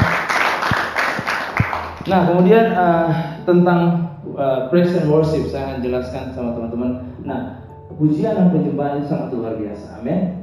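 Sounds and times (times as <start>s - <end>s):
applause: 0.0s - 2.2s
speech: 2.1s - 10.4s.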